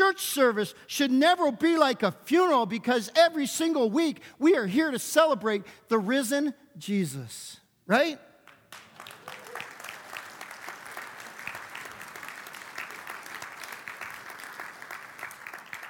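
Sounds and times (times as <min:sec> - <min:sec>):
speech: 0:00.2 - 0:08.3
audience clapping: 0:08.4 - 0:15.8.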